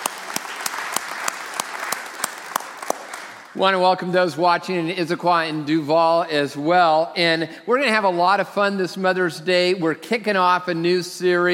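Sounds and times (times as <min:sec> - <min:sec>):
church congregation applauding mothers at a Mother's Day service: 0:00.0 - 0:03.6
speech: 0:03.6 - 0:11.5.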